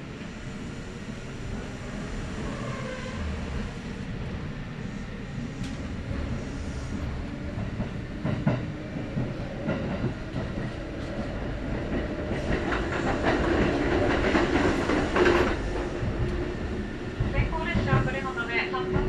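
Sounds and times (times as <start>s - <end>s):
local commuter train running on rails: 0.0s - 19.0s.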